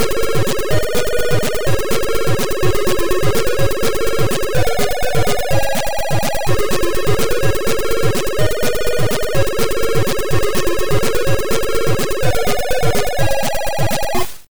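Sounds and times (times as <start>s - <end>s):
8-bit chiptune cover music: 0.0s - 14.5s.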